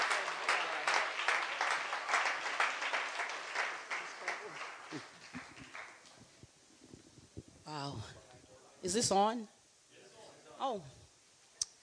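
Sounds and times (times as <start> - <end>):
audience hand clapping: 0.0 - 6.4
speech: 4.9 - 5.1, 7.7 - 8.2, 8.8 - 9.6, 10.6 - 11.0.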